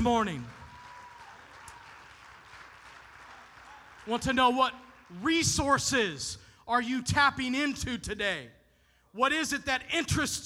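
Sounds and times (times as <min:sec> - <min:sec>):
speech: 0:00.0 - 0:00.6, 0:04.0 - 0:08.6, 0:09.2 - 0:10.4
audience applause: 0:00.0 - 0:05.1.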